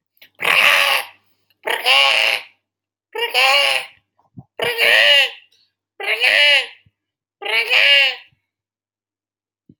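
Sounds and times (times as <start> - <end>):
person vocally imitating wild frog croaks: 0.3 - 2.6, 3.2 - 8.3.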